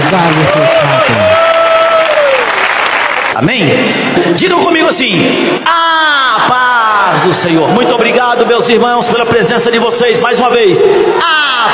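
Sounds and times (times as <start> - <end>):
congregation clapping during a church service: 0.0 - 4.0
speech: 0.1 - 1.2, 3.4 - 11.7.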